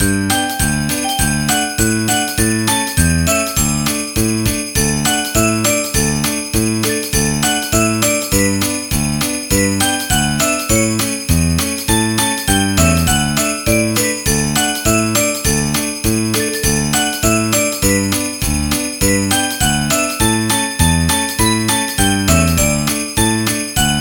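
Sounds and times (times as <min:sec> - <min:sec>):
Christmas song: 0:00.0 - 0:24.0.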